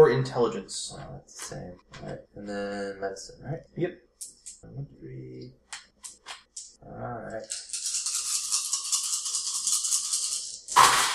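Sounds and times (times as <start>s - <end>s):
speech: 0.0s - 5.7s, 6.8s - 7.7s
handful of dice rattling and clattering: 7.4s - 11.1s.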